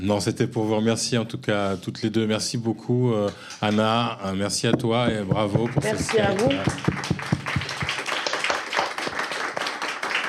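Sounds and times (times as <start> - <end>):
speech: 0.0 - 7.4
single person clapping: 5.6 - 10.2.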